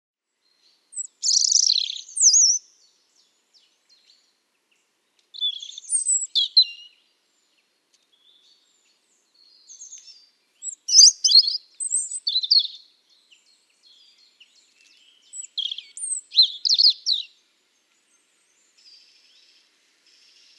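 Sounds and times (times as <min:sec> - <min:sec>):
European robin song: 0:00.3 - 0:20.5.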